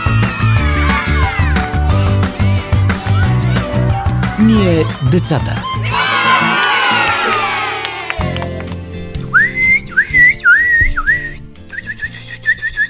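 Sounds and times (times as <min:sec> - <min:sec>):
crowd cheering: 0:00.0 - 0:11.1
speech: 0:04.5 - 0:05.7
person imitating bird calls by whistling: 0:09.3 - 0:12.8.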